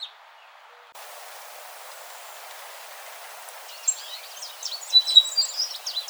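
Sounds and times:
American goldfinch chattering calls: 1.0s - 6.0s.

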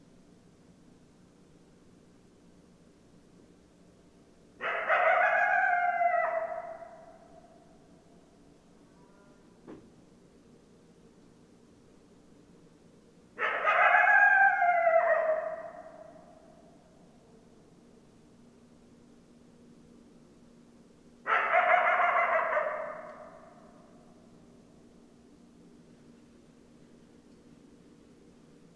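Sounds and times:
coyote chorus howling and yipping: 4.6s - 7.8s, 13.4s - 16.8s, 21.2s - 24.0s.

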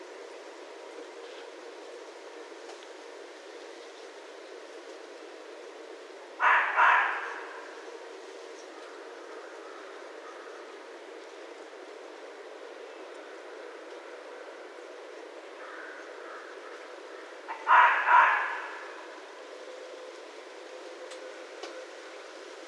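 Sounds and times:
red fox calling: 6.4s - 8.0s, 15.6s - 19.2s.

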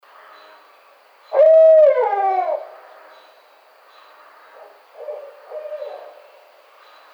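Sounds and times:
barred owl hooting: 1.3s - 2.9s, 5.0s - 6.2s.

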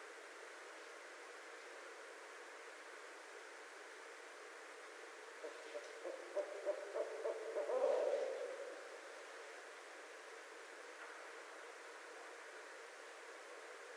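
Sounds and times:
Barred Owl calling: 5.4s - 8.9s.

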